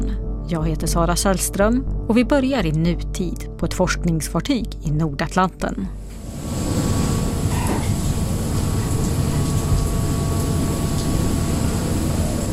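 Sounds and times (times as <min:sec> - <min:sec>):
speech: 0:00.5 - 0:06.0
rain hitting the deck of the Dutch ship Pelagia: 0:06.1 - 0:12.5.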